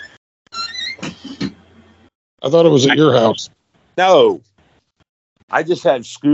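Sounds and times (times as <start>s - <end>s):
squeaky door: 0.0s - 1.6s
speech: 2.4s - 4.5s, 5.5s - 6.3s.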